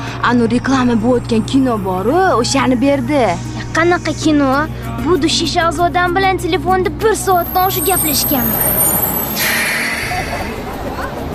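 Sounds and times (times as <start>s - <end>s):
bus engine rumble: 0.0s - 11.3s
speech: 0.2s - 9.0s
bus air-brake hiss: 8.7s - 10.6s.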